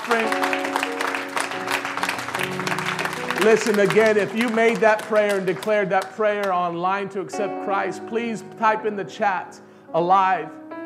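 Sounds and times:
audience hand clapping: 0.0 - 6.7
speech: 0.1 - 0.5, 3.4 - 10.6.

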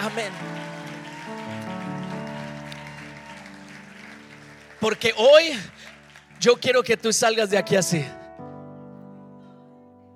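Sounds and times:
speech: 0.0 - 0.6, 4.8 - 8.2
audience applause: 0.0 - 7.2.

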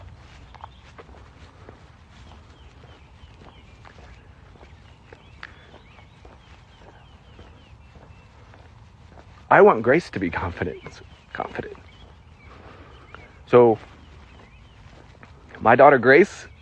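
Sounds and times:
footsteps of a person walking outdoors: 0.0 - 16.6
speech: 9.5 - 11.9, 13.5 - 13.9, 15.6 - 16.5.

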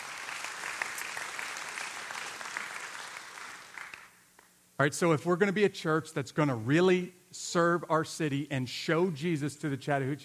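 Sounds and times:
audience clapping: 0.0 - 4.5
speech: 4.8 - 10.2.

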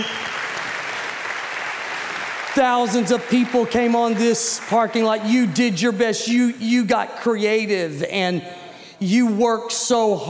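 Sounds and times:
crowd clapping: 0.0 - 5.9
speech: 2.6 - 10.2.

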